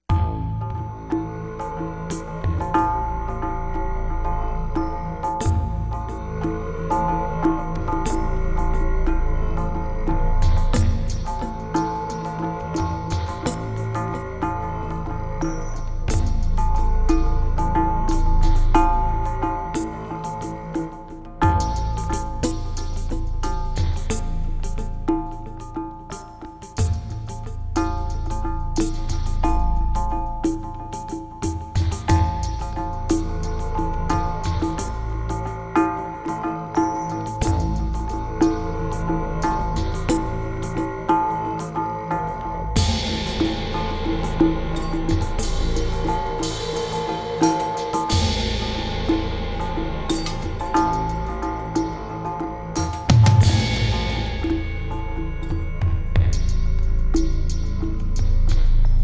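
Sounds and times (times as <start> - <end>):
weird world music: 0.0 - 59.0.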